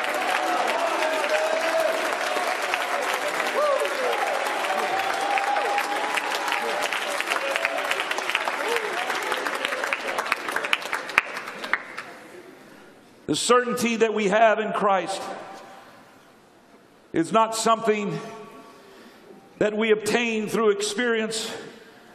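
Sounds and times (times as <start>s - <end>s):
audience shouting: 0.0s - 9.6s
audience clapping hands: 0.0s - 12.3s
speech: 13.3s - 15.5s, 17.2s - 18.4s, 19.6s - 21.6s.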